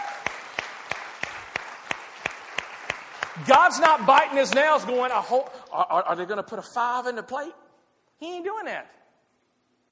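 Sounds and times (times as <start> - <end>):
audience applause: 0.0 - 4.9
rhythmic clapping: 0.0 - 5.6
speech: 3.4 - 7.6, 8.2 - 9.0.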